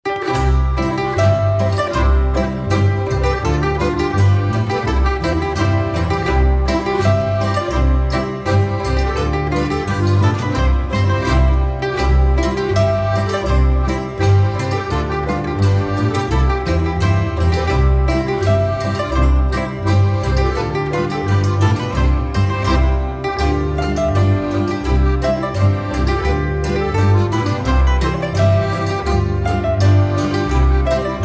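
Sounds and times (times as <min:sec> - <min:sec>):
Bavarian boarischer folk dance music: 0:00.0 - 0:31.2.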